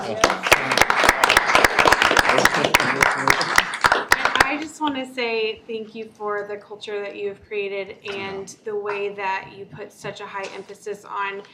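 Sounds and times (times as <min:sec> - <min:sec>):
audience round of applause: 0:00.0 - 0:04.6
speech: 0:05.0 - 0:11.5.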